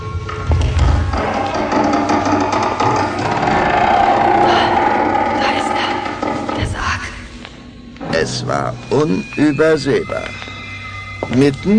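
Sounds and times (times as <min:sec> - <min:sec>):
cellar door swinging open with grinding creak: 0:00.5 - 0:07.2
speech: 0:08.6 - 0:10.4, 0:11.3 - 0:11.7.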